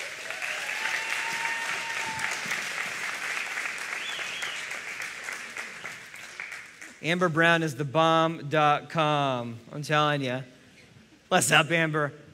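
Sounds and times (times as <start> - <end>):
audience applause: 0.0 - 7.0
speech: 7.0 - 10.5, 11.3 - 12.2.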